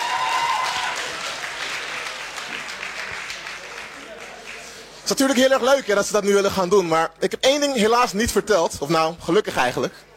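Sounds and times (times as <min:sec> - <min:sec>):
audience applause: 0:00.0 - 0:05.0
speech: 0:05.1 - 0:10.1.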